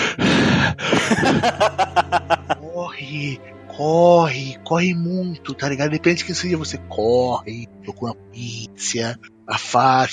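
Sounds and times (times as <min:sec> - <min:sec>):
person imitating heavy breathing: 0:00.0 - 0:01.6
laughter: 0:00.8 - 0:03.0
speech: 0:01.4 - 0:01.7, 0:02.4 - 0:10.1.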